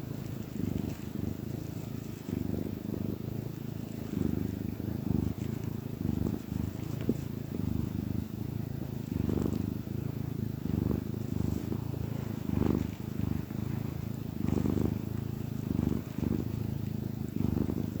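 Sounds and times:
domestic cat purring: 0.0s - 17.9s.

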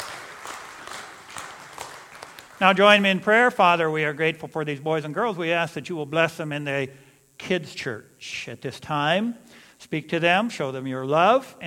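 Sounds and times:
audience applauding: 0.0s - 3.3s
speech: 2.6s - 11.6s.

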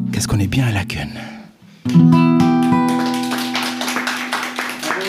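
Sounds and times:
speech: 0.2s - 1.3s
crowd applauding: 1.9s - 5.0s.

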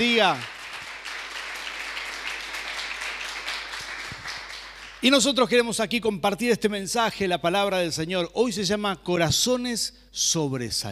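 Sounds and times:
speech: 0.0s - 0.5s, 5.0s - 10.9s
crowd applause: 0.0s - 5.0s.

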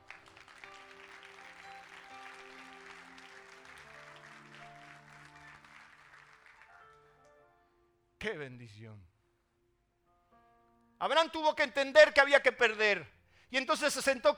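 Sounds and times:
audience applause: 0.0s - 7.2s
speech: 8.2s - 9.1s, 11.0s - 14.3s.

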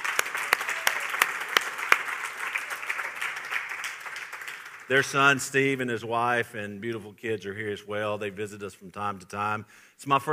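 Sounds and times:
audience applauding: 0.0s - 5.4s
speech: 4.9s - 10.3s.

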